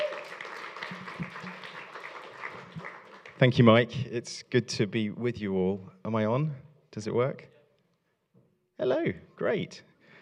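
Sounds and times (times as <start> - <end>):
round of applause: 0.0 - 3.9
speech: 3.4 - 7.5, 8.8 - 9.9.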